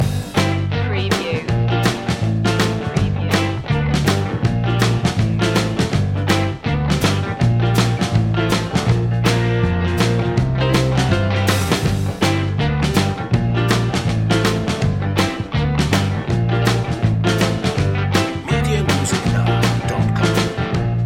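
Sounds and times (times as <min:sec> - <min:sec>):
vintage blues loop: 0:00.0 - 0:21.0.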